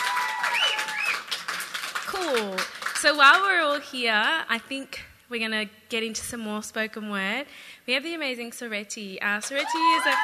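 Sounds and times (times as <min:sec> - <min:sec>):
audience applause: 0:00.0 - 0:03.0, 0:09.6 - 0:10.2
speech: 0:02.2 - 0:10.2.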